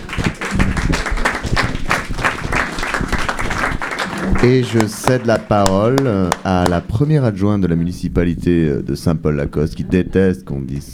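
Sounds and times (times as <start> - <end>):
audience applause: 0.0 - 6.8
speech: 4.4 - 10.9.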